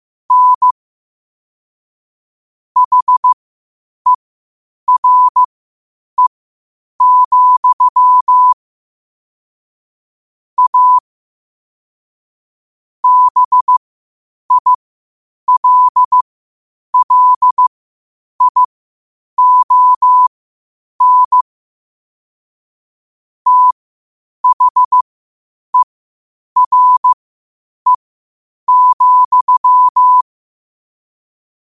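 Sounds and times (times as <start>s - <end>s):
morse code at 5 wpm: 0.3s - 0.8s, 2.8s - 3.4s, 4.9s - 5.5s, 7.0s - 8.6s, 10.6s - 11.0s, 13.0s - 13.8s, 14.5s - 14.8s, 15.5s - 16.2s, 17.0s - 17.7s, 18.4s - 18.7s, 19.4s - 20.3s, 21.0s - 21.4s, 23.5s - 23.8s, 24.4s - 25.0s, 26.6s - 27.2s, 28.7s - 30.2s.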